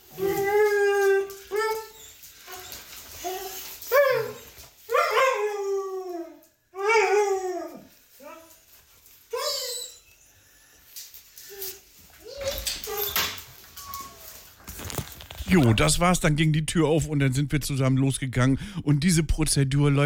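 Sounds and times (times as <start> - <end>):
excited dog whining and howling: 0.0 - 8.4, 9.3 - 10.4, 11.6 - 14.4
speech: 15.5 - 20.0.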